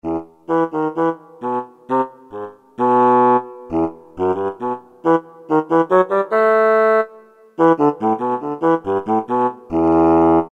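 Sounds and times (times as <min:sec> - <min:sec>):
bassoon: 0:00.0 - 0:10.5.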